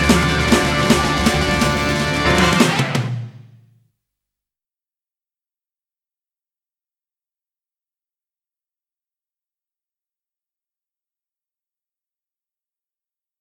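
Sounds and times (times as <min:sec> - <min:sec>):
instrumental music: 0:00.0 - 0:03.4.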